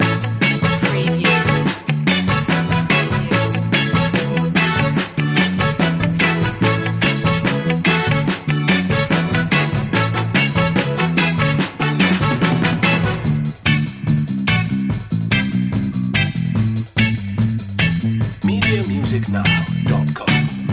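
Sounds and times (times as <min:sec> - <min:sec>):
music loop: 0:00.0 - 0:20.7.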